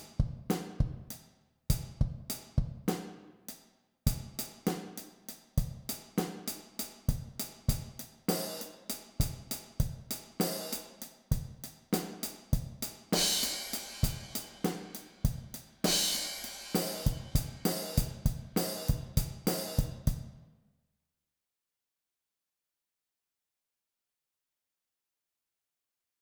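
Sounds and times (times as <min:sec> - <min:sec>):
drum set playing in mixed meter at 50 bpm: 0:00.0 - 0:01.1, 0:01.8 - 0:03.2, 0:04.1 - 0:20.3.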